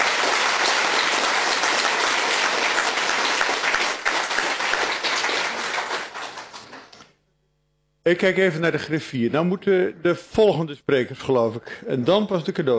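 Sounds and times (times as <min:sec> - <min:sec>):
audience applause: 0:00.0 - 0:07.0
speech: 0:08.1 - 0:12.7.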